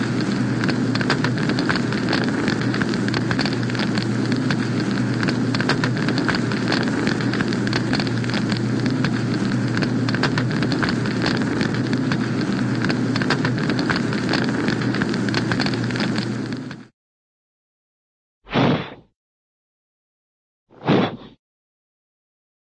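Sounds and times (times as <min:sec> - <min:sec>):
heavy roaring inferno fire blazing, cartoon: 0:00.0 - 0:16.9.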